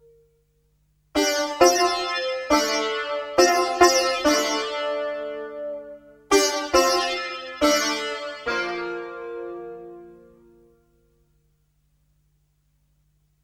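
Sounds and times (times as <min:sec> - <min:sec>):
sitar on guitar synth: 0:01.2 - 0:10.8.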